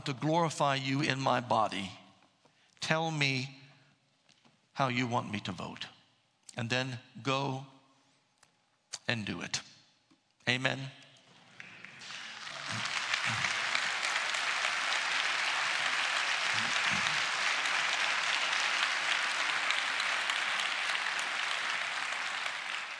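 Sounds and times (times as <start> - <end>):
speech: 0.0 - 2.0, 2.9 - 3.6, 4.8 - 6.0, 6.6 - 7.7, 9.0 - 9.7, 10.4 - 11.0
audience applause: 11.5 - 22.9.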